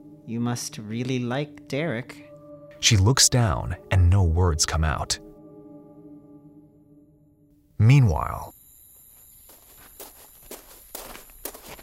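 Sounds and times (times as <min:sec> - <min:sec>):
speech: 0:00.3 - 0:05.2, 0:07.8 - 0:08.6
footsteps walking: 0:09.2 - 0:11.8.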